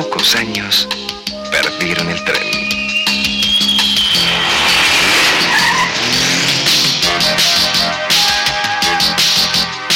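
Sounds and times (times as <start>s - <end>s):
speech: 0.2s - 1.0s, 1.8s - 2.4s
tires screeching and skidding: 3.0s - 9.6s
Falcon car engine roaring loudly: 3.0s - 9.8s.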